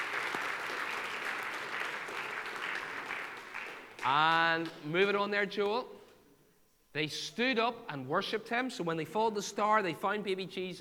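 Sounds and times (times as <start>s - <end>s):
audience clapping: 0.0s - 4.9s
speech: 4.0s - 6.0s, 6.9s - 10.7s.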